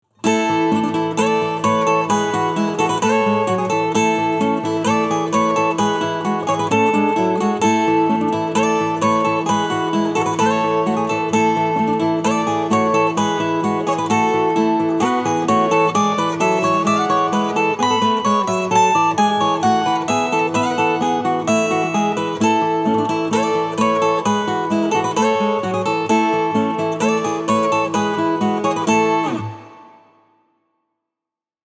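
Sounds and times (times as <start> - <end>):
acoustic music: 0.2 - 30.3.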